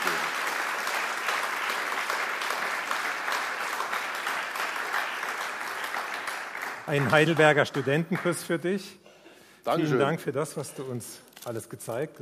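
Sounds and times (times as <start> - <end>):
applause: 0.0 - 8.6
speech: 6.9 - 12.2.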